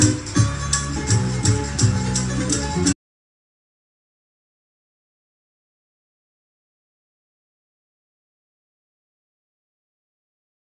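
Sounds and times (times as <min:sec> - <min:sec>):
Italian tarantella folk dance music: 0:00.0 - 0:03.0.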